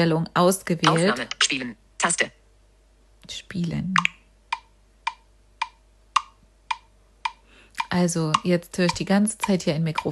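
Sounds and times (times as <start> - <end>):
speech: 0.0 - 2.4, 3.2 - 4.2, 7.9 - 10.1
metronome ticking: 4.0 - 10.1.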